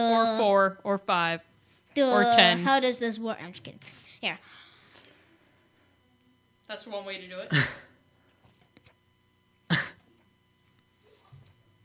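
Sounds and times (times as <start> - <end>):
speech: 0.0 - 4.6, 6.7 - 7.9
soft breath: 3.8 - 6.0.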